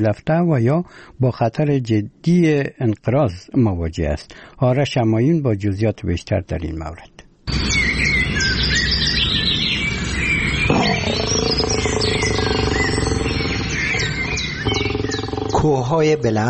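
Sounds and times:
speech: 0:00.0 - 0:08.5, 0:15.6 - 0:16.4
many birds chirping: 0:07.5 - 0:16.4
deeper animal-like growl: 0:10.7 - 0:16.2.

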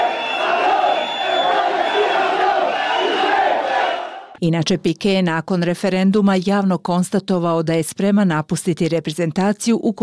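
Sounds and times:
Spain fans shouting insults at a training camp: 0:00.0 - 0:04.4
speech: 0:04.4 - 0:10.0.

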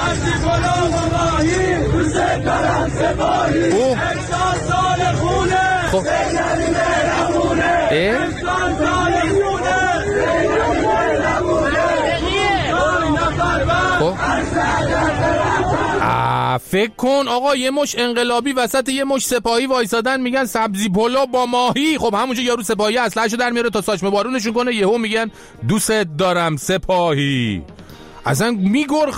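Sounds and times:
crowd chanting political slogans: 0:00.0 - 0:16.2
speech: 0:16.1 - 0:29.1.

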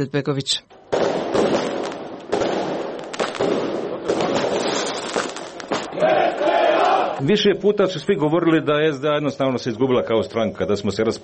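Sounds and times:
speech: 0:00.0 - 0:01.8, 0:07.2 - 0:11.2
fireworks crackling and popping at an election victory celebration: 0:00.7 - 0:06.0
crowd cheering and chanting at SDA party headquarters: 0:05.8 - 0:07.2.

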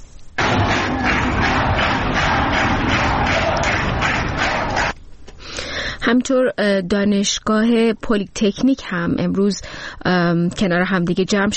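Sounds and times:
students on a university campus clapping rhythmically: 0:00.4 - 0:05.0
speech: 0:06.1 - 0:11.5.

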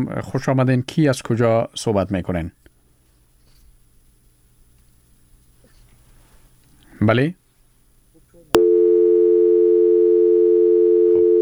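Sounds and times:
speech: 0:00.0 - 0:02.6, 0:07.0 - 0:07.4
telephone line tone after a dropped call: 0:08.6 - 0:11.4.

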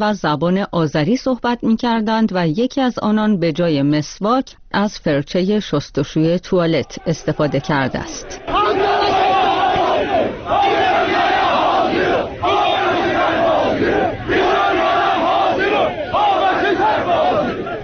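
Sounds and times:
speech: 0:00.0 - 0:08.9
protest crowd in Tabriz chanting in unison against the Fitil program: 0:06.8 - 0:17.8.

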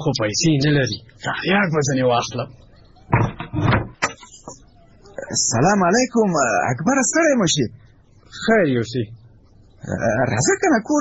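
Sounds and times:
speech: 0:00.0 - 0:03.8, 0:05.3 - 0:09.2, 0:09.8 - 0:10.9
someone banging on a door: 0:03.1 - 0:04.2.

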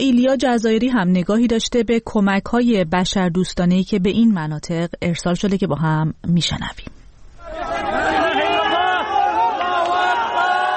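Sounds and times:
speech: 0:00.0 - 0:07.0
crowd cheering after rescue of a teenager from rubble in Jindires: 0:07.4 - 0:10.7.

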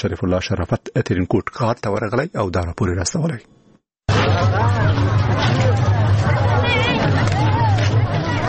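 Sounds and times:
speech: 0:00.0 - 0:07.3
hubbub of fairgoers at an Eid fair in Tarinkot, Afghanistan: 0:04.1 - 0:08.4.

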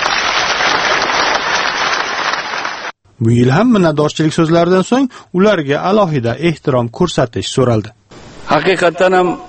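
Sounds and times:
audience applause honoring foreign guests at an official gathering: 0:00.0 - 0:03.0
speech: 0:03.2 - 0:09.4.

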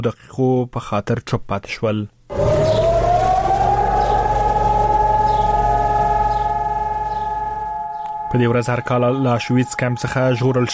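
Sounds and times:
speech: 0:00.0 - 0:02.8, 0:08.3 - 0:10.7
low rumble: 0:02.3 - 0:08.7
remembrance alarm siren wailing across Jerusalem: 0:02.3 - 0:10.7.

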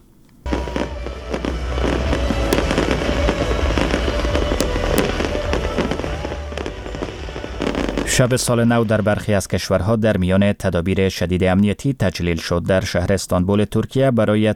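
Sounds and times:
fireworks exploding at New Year celebrations: 0:00.4 - 0:09.4
speech: 0:08.2 - 0:14.5.

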